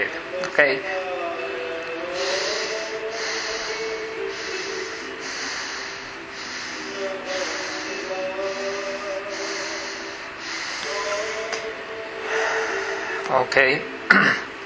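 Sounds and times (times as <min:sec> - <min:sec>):
speech: 0:00.6 - 0:01.0, 0:13.3 - 0:14.4
slow breathing through the nose: 0:02.0 - 0:13.3.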